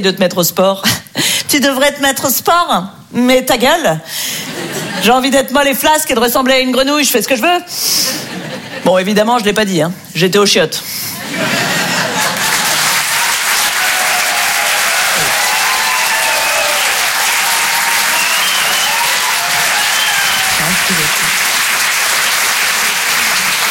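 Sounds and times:
speech: 0.0 - 4.4, 5.0 - 8.1, 8.8 - 11.7
laughter: 8.1 - 8.9, 11.2 - 13.2
audience applause: 11.6 - 23.6.

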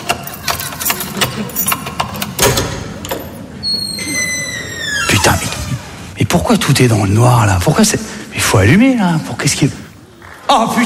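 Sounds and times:
keys unlocking and opening a door: 0.0 - 5.6
speech: 6.3 - 9.8, 10.5 - 10.8.

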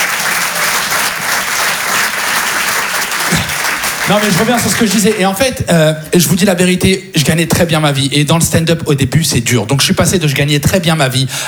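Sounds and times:
audience applause: 0.0 - 5.5
speech: 4.1 - 11.4.

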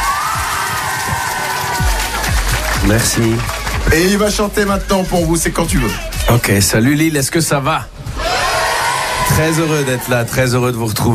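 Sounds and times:
concert crowd in Lille cheering, whooping and shouting: 0.0 - 4.6, 8.0 - 10.7
speech: 2.9 - 8.0, 9.3 - 11.1.

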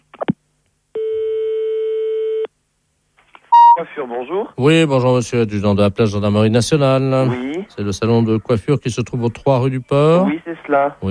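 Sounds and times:
long steady telephone tone as a call is placed to the police: 1.0 - 2.5, 3.5 - 3.8
speech: 3.8 - 11.0.

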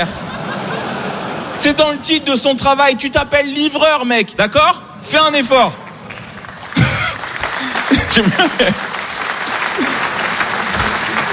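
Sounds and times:
speech: 0.0 - 0.3, 1.6 - 5.8, 8.2 - 8.9
laughter: 0.0 - 1.7, 6.6 - 11.3
crowd clapping: 5.7 - 11.3.

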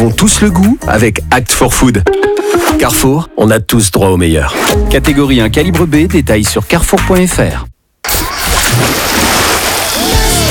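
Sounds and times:
speech: 0.0 - 7.7
splashing water wave sound effect: 8.6 - 10.3.

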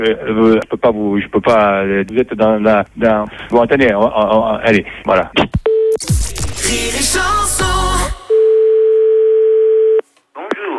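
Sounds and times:
speech: 0.0 - 8.0
telephone line tone: 8.2 - 10.0.

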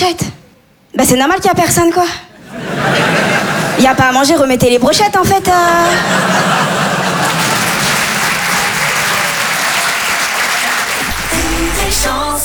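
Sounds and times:
speech: 0.0 - 0.3, 0.9 - 6.8, 11.9 - 12.4
laughter: 2.4 - 4.6, 5.4 - 12.1
audience applause: 5.9 - 12.4.

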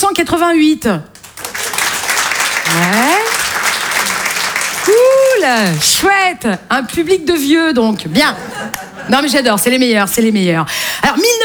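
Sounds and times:
speech: 0.2 - 1.1, 2.7 - 3.2, 4.9 - 11.4
comedy club audience applause at a stand-up show: 1.2 - 6.1
crowd whooping: 1.4 - 6.0
laughter: 8.0 - 9.5.

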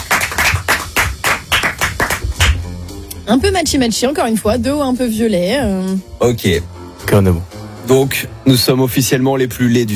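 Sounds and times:
studio audience clapping: 0.0 - 2.7
speech: 3.3 - 9.9.

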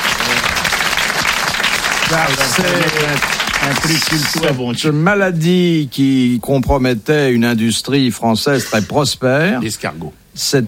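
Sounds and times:
audience applause: 0.0 - 4.7
speech: 2.1 - 10.6.

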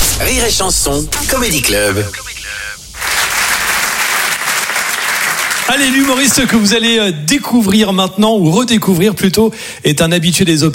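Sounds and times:
speech: 0.2 - 2.3, 5.7 - 10.7
audience applause at Rire et Chanson Comedy Club: 3.0 - 6.7.

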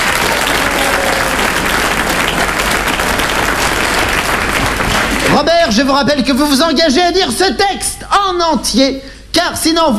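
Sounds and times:
audience applause: 0.0 - 5.6
speech: 5.4 - 9.9.

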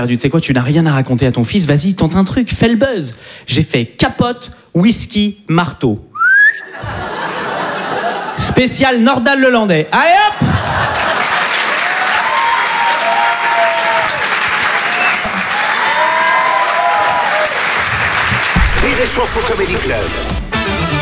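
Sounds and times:
speech: 0.0 - 7.1, 8.4 - 11.0, 19.0 - 20.4
laughter: 6.6 - 8.8, 10.1 - 12.1
large audience applause: 10.4 - 20.3
cheers and whistles: 10.6 - 18.6.

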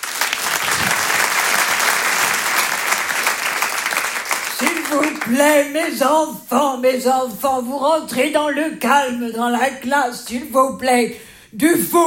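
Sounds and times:
large audience applause: 0.0 - 5.5
speech: 4.9 - 12.0.

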